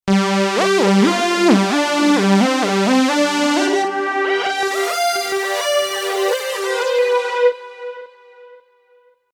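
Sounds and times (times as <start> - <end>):
lead melody: 0.1 - 8.6.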